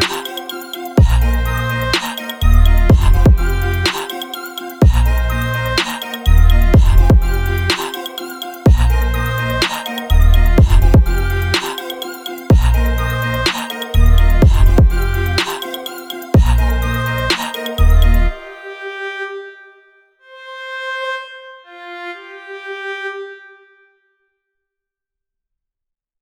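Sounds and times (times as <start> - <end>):
afro trap fusion beats: 0.0 - 18.5.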